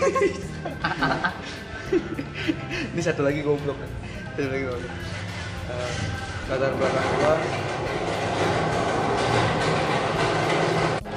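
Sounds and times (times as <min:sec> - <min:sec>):
speech: 0:00.0 - 0:01.2, 0:03.0 - 0:05.1, 0:05.7 - 0:08.6
laughter: 0:00.0 - 0:03.0
rail rumble at Gambir station in Jakarta: 0:04.8 - 0:11.1.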